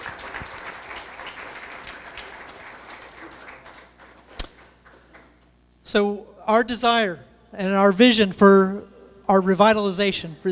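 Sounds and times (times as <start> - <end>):
audience round of applause: 0.0 - 5.4
speech: 5.9 - 10.5.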